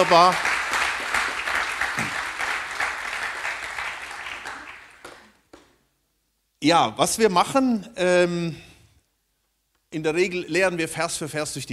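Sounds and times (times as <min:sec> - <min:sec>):
speech: 0:00.0 - 0:00.5, 0:06.6 - 0:08.7, 0:09.9 - 0:11.7
audience applause: 0:00.0 - 0:05.7.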